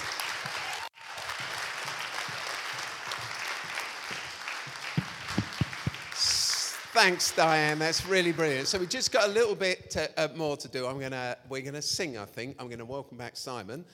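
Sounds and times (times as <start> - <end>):
audience applause: 0.0 - 9.4
speech: 7.0 - 13.9.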